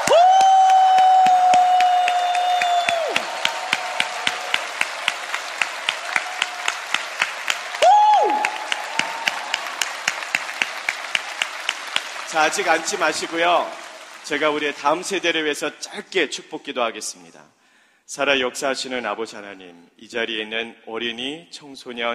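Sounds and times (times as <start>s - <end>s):
crowd applause: 0.0s - 15.4s
speech: 12.4s - 22.1s.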